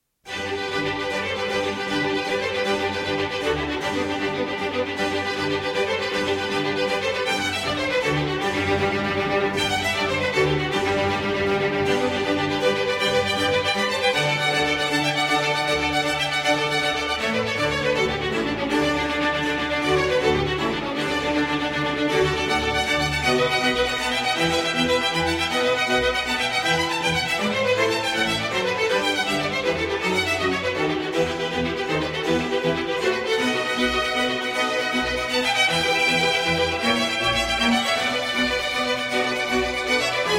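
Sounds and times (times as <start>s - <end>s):
concerto for strings and continuo in G major: 0.3s - 40.3s.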